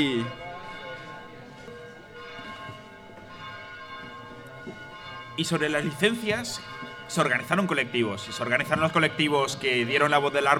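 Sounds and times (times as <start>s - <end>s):
speech: 0.0s - 0.4s, 5.4s - 10.5s
church bells ringing: 0.0s - 10.5s.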